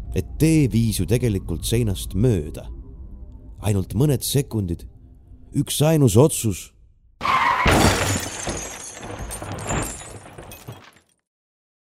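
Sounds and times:
speech: 0.1 - 2.8, 3.6 - 4.9, 5.5 - 6.7
glass shattering: 7.2 - 11.2
loud crash: 7.3 - 10.8.

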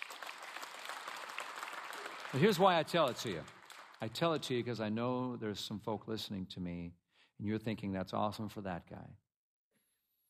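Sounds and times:
audience applause: 0.0 - 4.6
speech: 2.3 - 9.2.

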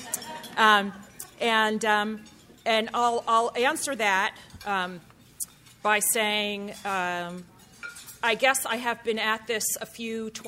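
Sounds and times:
silverware clinking on plates: 0.0 - 10.4
speech: 0.6 - 5.1, 5.8 - 7.5, 8.2 - 10.4.

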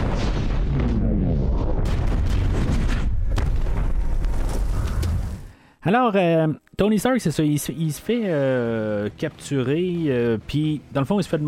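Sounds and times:
Jericho missile explosion from the film Iron Man: 0.0 - 4.8
speech: 5.8 - 11.4.

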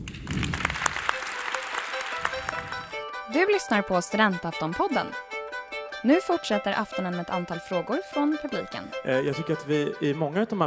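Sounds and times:
audience clapping in a room: 0.0 - 3.0
speech: 3.3 - 5.3, 6.0 - 10.6.

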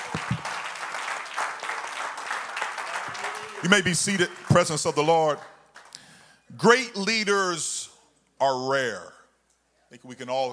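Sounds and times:
audience clapping: 0.0 - 6.1
speech: 3.6 - 5.5, 6.6 - 7.7, 8.4 - 9.2, 9.9 - 10.5.

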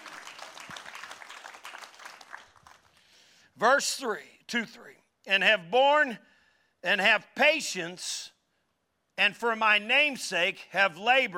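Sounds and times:
audience applauding: 0.0 - 3.0
speech: 3.6 - 8.3, 9.2 - 11.3.

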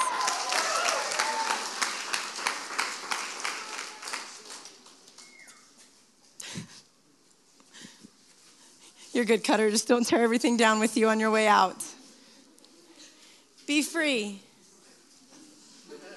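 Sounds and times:
people clapping: 0.0 - 5.8
speech: 9.2 - 11.8, 13.8 - 14.5.

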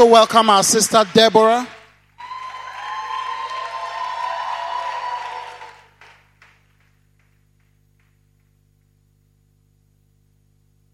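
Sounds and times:
speech: 0.0 - 1.8
congregation applauding at a church prayer gathering: 0.0 - 8.4.

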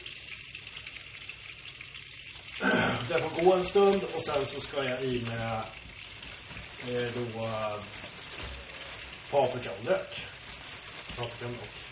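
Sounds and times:
meat sizzling in butter in a frying pan: 0.0 - 11.8
speech: 2.6 - 5.8, 6.8 - 8.1, 9.3 - 10.3, 11.2 - 11.8.

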